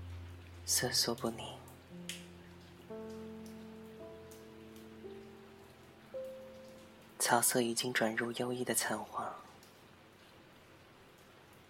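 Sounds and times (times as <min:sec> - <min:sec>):
sustained musical notes: 0:00.0 - 0:07.2
light rain falling: 0:00.0 - 0:11.6
water dripping: 0:00.0 - 0:11.6
speech: 0:00.7 - 0:01.6, 0:07.3 - 0:09.5.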